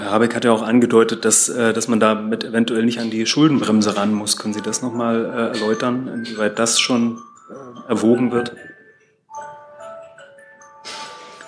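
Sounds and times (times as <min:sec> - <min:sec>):
speech: 0:00.1 - 0:08.7
mobile phone ringtone like a music box: 0:04.6 - 0:11.4.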